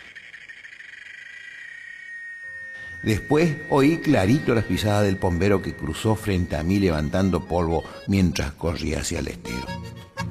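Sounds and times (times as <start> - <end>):
cicada singing: 0.0 - 8.0
speech: 3.0 - 10.0.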